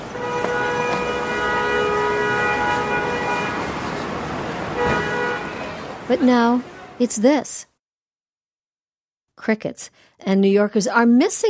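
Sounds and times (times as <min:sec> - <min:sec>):
construction noise in New York City: 0:00.0 - 0:07.0
trains in New York City: 0:00.0 - 0:07.0
traffic in New York City: 0:00.0 - 0:07.7
speech: 0:06.1 - 0:07.7, 0:09.4 - 0:11.4.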